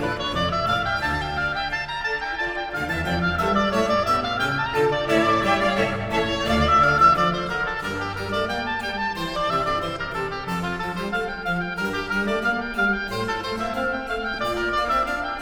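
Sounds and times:
oboe concerto music in D minor: 0:00.0 - 0:15.3.

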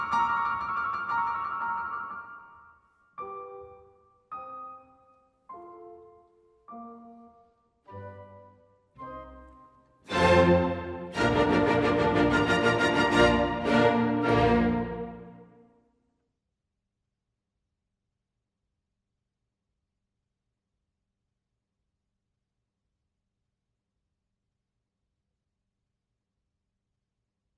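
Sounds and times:
piano concerto: 0:00.0 - 0:15.5.

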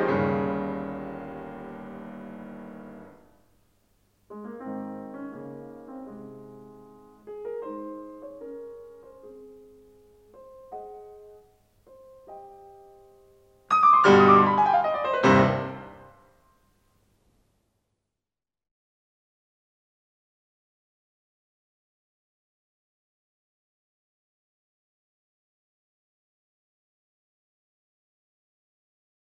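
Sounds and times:
piano sonata in C minor: 0:00.0 - 0:03.5, 0:04.3 - 0:16.8.

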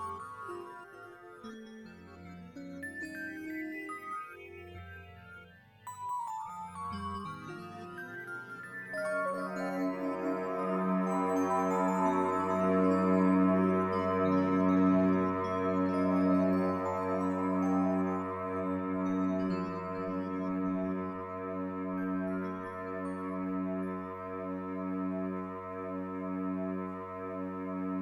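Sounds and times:
harmonic minor music coda: 0:00.0 - 0:27.9.

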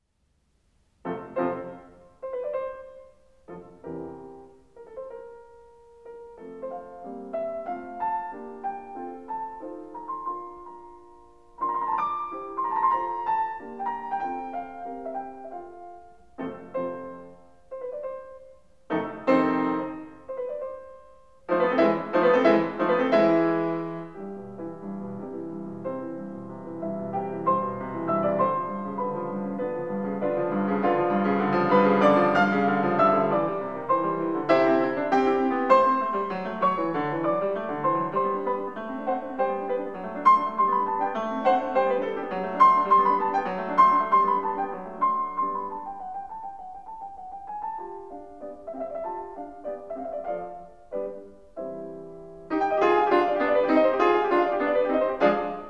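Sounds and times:
piano sonata in F major: 0:00.0 - 0:55.6.

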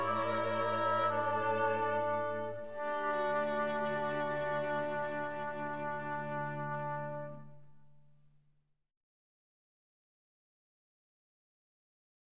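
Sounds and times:
slow concerto movement in F major: 0:00.0 - 0:07.8.

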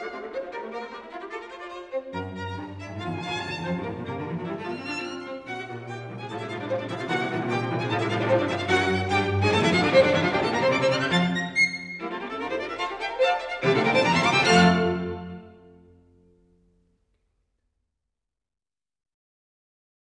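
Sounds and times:
string quartet in F minor playing a larghetto: 0:00.0 - 0:15.9.

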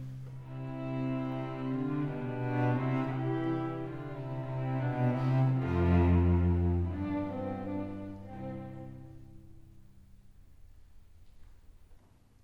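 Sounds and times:
string quartet playing a minuet: 0:00.2 - 0:09.9.

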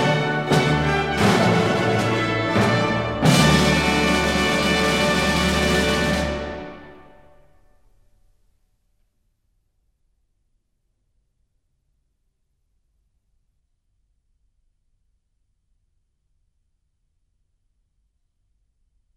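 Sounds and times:
music: 0:00.0 - 0:08.2.

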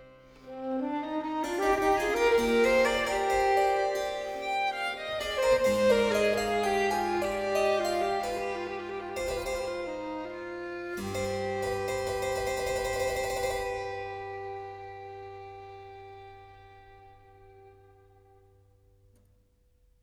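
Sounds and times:
violin playing sonata adagio: 0:00.0 - 0:18.7
harpsichord playing sonata adagio: 0:01.5 - 0:14.9.

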